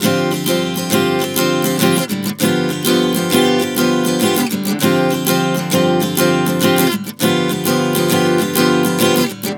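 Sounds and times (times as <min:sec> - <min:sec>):
acoustic guitar chord progression Dm7 to G7 at 100 bpm: 0:00.0 - 0:09.5.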